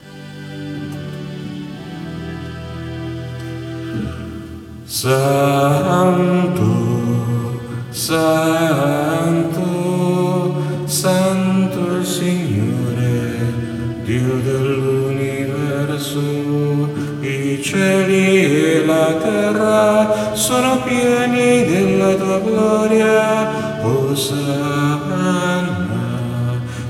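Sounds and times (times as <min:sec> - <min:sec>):
contralto voices singing: 0:00.0 - 0:26.8.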